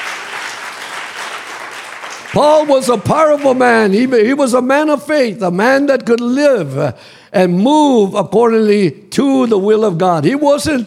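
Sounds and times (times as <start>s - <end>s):
audience clapping: 0.0s - 4.1s
speech: 2.3s - 10.8s.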